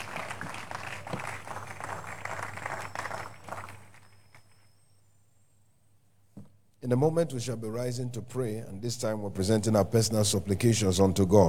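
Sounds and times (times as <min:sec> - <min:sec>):
audience clapping: 0:00.0 - 0:04.5
speech: 0:06.8 - 0:11.4.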